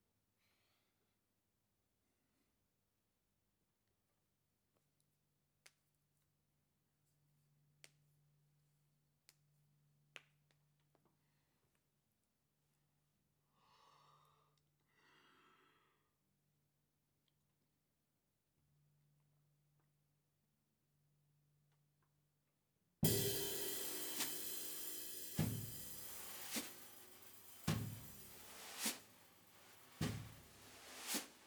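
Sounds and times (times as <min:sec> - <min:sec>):
ride cymbal: 0:23.0 - 0:31.4.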